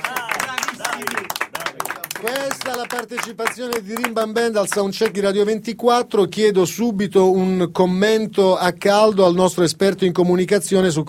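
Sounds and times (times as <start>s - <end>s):
audience applause: 0.0s - 5.2s
speech: 2.2s - 11.0s.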